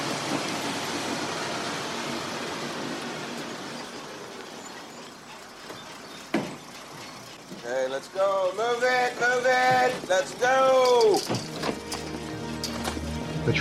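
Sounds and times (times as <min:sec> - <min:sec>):
engine rumble of a blue police academy bus pulling up to a gate: 0:00.0 - 0:13.5
speech: 0:07.7 - 0:11.4.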